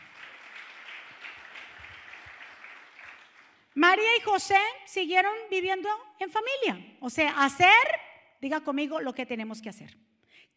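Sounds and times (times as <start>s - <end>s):
audience applause: 0.0s - 3.7s
speech: 3.8s - 10.0s.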